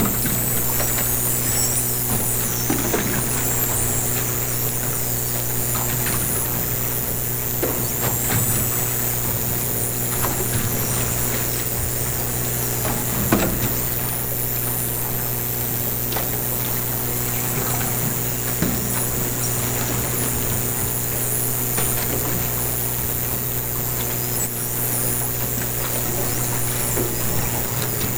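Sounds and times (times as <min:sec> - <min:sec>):
dolphins whistling underwater: 0:00.0 - 0:28.1.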